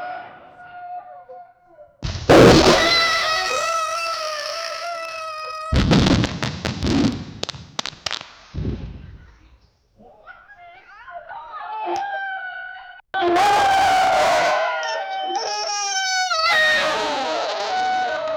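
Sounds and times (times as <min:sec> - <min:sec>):
farts: 0:02.1 - 0:07.4, 0:13.2 - 0:18.2.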